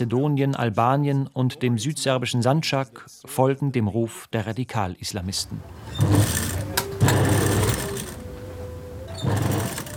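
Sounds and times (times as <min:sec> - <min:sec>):
speech: 0:00.0 - 0:06.5
sewing machine running: 0:05.6 - 0:09.9.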